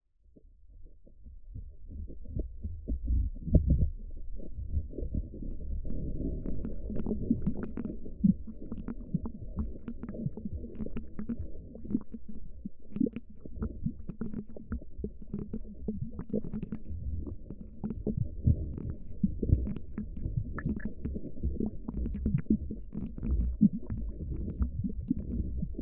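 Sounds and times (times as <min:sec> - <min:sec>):
underwater ASMR sounds: 0:01.5 - 0:25.8.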